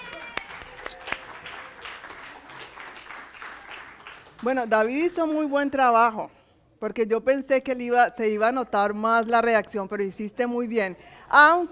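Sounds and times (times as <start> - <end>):
audience applause: 0.0 - 4.4
speech: 4.4 - 11.7.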